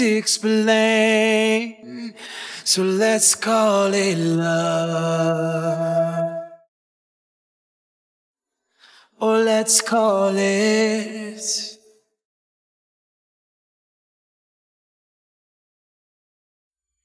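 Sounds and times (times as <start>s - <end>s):
person singing alone: 0.0s - 6.6s, 9.2s - 11.8s.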